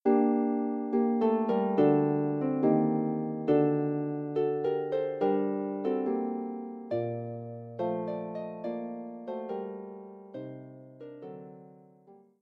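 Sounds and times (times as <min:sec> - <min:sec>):
harp: 0:00.0 - 0:12.3.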